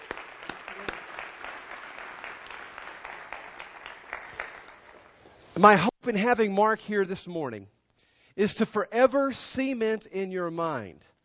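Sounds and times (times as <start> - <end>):
audience applause at a church morning gathering: 0.0 - 5.2
speech: 5.6 - 7.8, 8.4 - 11.1.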